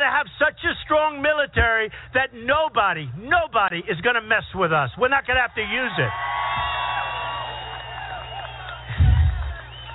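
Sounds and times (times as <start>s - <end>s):
speech: 0.0s - 6.8s
large crowd cheering: 5.4s - 9.9s
whoops and shouts: 6.0s - 9.9s.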